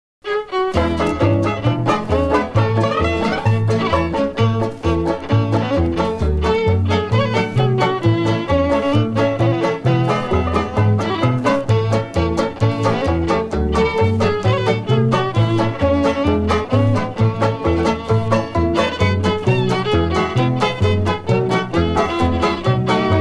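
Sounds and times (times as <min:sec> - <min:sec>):
instrumental music: 0:00.2 - 0:23.1.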